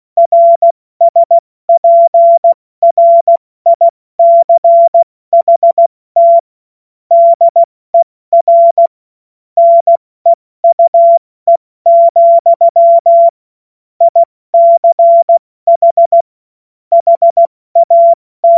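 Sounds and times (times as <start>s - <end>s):
CW Morse code beeps: 0.2s - 6.5s, 7.1s - 7.7s, 8.3s - 8.9s, 9.6s - 10.0s, 10.6s - 13.4s, 14.0s - 16.3s, 16.9s - 18.5s.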